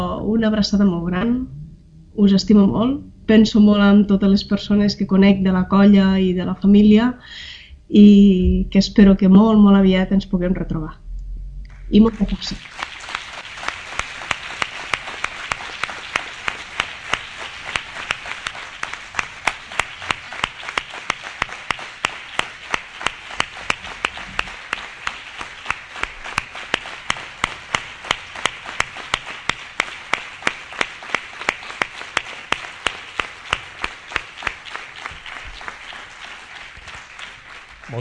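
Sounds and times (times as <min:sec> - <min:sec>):
speech: 0:00.2 - 0:01.6, 0:02.2 - 0:11.0, 0:11.9 - 0:12.9
strong applause from studio audience: 0:11.7 - 0:38.0.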